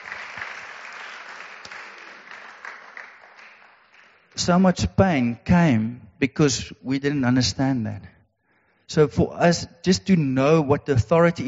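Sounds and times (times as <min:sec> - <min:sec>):
crowd applauding: 0:00.0 - 0:04.4
speech: 0:04.4 - 0:08.2, 0:08.9 - 0:11.4.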